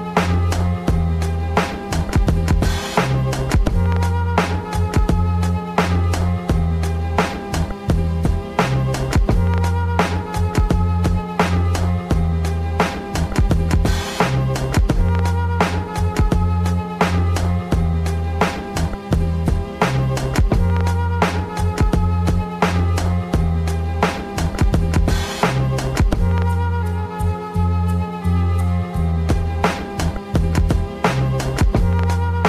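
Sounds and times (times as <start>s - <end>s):
oldschool jazz hip hop beat: 0.0s - 32.4s.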